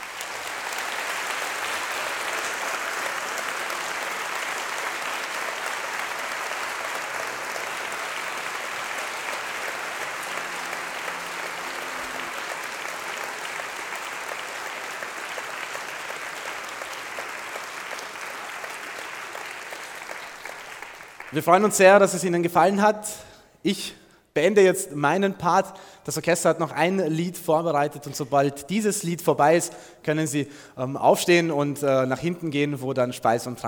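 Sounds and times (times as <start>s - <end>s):
loud audience applause: 0.0s - 21.7s
speech: 21.3s - 33.6s.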